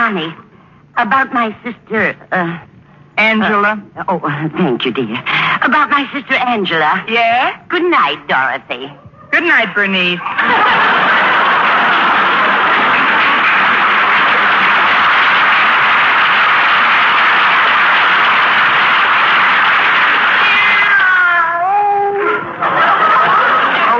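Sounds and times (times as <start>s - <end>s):
speech: 0.1s - 10.9s
laughter: 10.2s - 20.3s, 22.1s - 23.9s
cat meowing: 20.2s - 22.4s.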